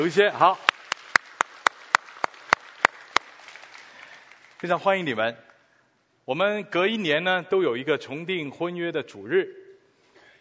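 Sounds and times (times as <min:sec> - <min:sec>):
speech: 0:00.0 - 0:00.7, 0:04.6 - 0:05.5, 0:06.3 - 0:09.6
hand clapping at a church service welcoming first-time visitors: 0:00.4 - 0:05.0.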